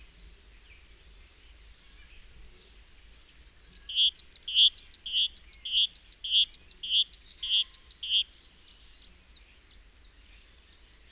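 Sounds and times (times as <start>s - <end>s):
great tit call: 3.6s - 8.2s.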